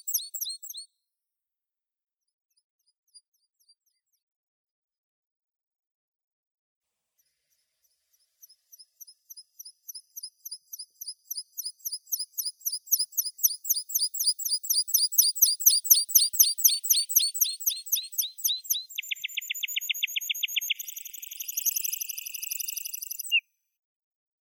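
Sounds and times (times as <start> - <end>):
meadow pipit Anthus pratensis: 8.4 - 23.4.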